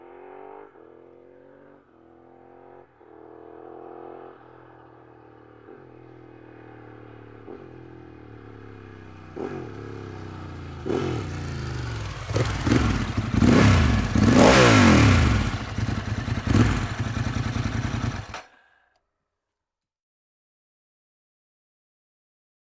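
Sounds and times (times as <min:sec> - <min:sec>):
Ducati 916 SPS motorcycle engine: 0:00.2 - 0:18.5.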